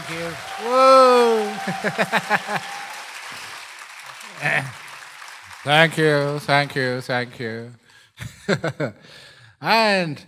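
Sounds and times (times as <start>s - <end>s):
audience applause: 0.0s - 7.6s
speech: 0.1s - 2.8s, 4.4s - 4.8s, 5.6s - 10.2s
laughter: 1.0s - 3.0s, 4.4s - 4.8s, 8.2s - 9.0s.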